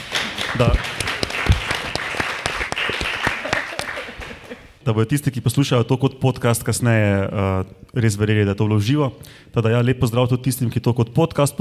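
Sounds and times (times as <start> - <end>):
live audience applause: 0.0 - 4.8
speech: 0.6 - 1.0, 4.9 - 11.5
laughter: 3.2 - 4.8.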